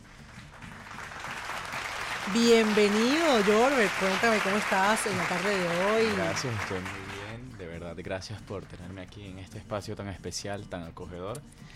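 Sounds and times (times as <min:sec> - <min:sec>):
applause: 0:00.0 - 0:07.4
speech: 0:02.3 - 0:07.2, 0:08.0 - 0:11.7.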